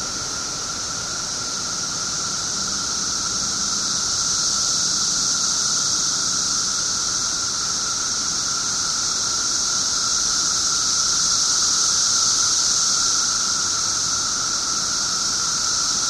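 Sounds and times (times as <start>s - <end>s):
17-year cicada Brood XIII in Glenview IL: 0.0s - 16.0s.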